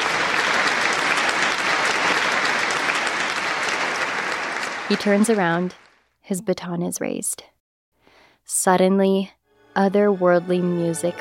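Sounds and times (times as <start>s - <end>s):
concert hall audience applause: 0.0s - 6.0s
speech: 4.9s - 7.5s, 8.4s - 11.1s.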